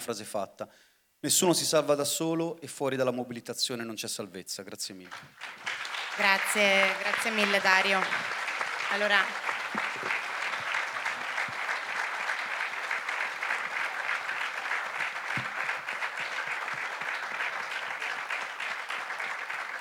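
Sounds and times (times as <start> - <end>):
speech: 0.0 - 9.8
audience applause after a speech at a public meeting: 5.1 - 19.7.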